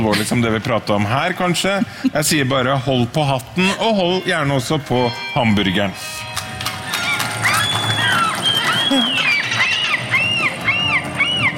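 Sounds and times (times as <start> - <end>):
speech: 0.0 - 6.2
seagulls crying: 6.8 - 11.5.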